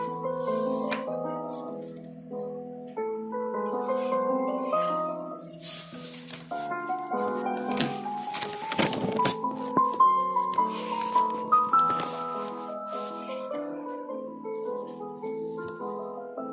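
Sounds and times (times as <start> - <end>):
soft piano music: 0.0 - 16.5
rustling and tapping: 5.6 - 12.8.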